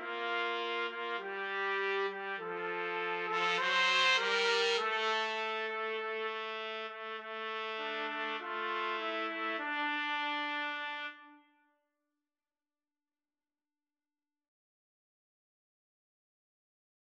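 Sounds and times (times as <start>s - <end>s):
trumpet trio playing: 0.0s - 11.5s.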